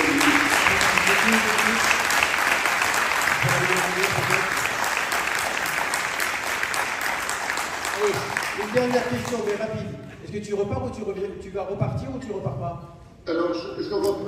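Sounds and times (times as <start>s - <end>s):
audience applause: 0.0s - 9.7s
speech: 8.8s - 14.2s.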